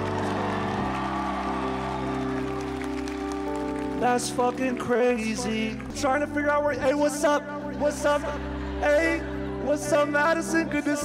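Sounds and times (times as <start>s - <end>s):
audience clapping at a comedy show: 0.0s - 4.9s
speech: 4.0s - 11.0s.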